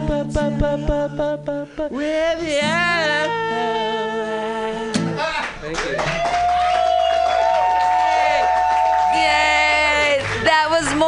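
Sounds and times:
speech: 0:00.3 - 0:04.0
audience clapping at a comedy show: 0:05.2 - 0:11.0
raised voices and cheering: 0:05.9 - 0:10.4.

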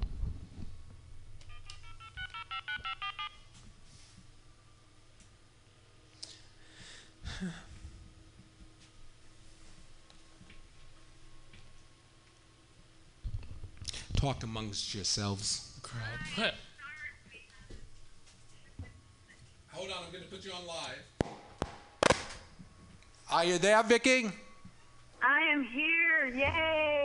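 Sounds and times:
low hum: 0:00.0 - 0:27.0
telephone touch-tone dialing beeps: 0:01.5 - 0:03.3
speech: 0:07.4 - 0:07.7, 0:14.2 - 0:16.7, 0:23.4 - 0:24.4, 0:25.6 - 0:26.8.

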